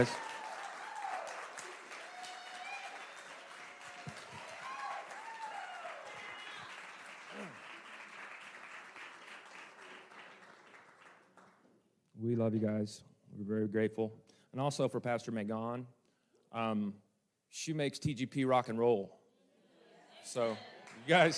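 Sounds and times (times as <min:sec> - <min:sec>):
speech: 0:00.0 - 0:00.3, 0:12.4 - 0:19.2, 0:20.2 - 0:21.3
audience applause: 0:00.0 - 0:11.6, 0:20.4 - 0:21.3.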